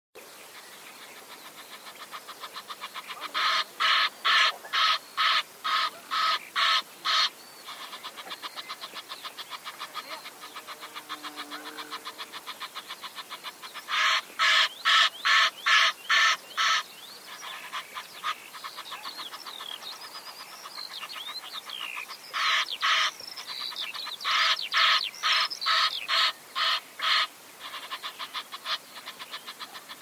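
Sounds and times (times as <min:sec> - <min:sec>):
bird harsh rasping calls: 0:01.4 - 0:29.9.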